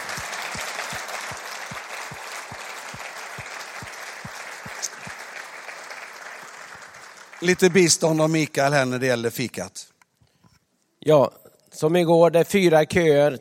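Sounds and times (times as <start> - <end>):
warm audience applause: 0.0 - 8.4
speech: 7.4 - 9.9, 11.0 - 13.3.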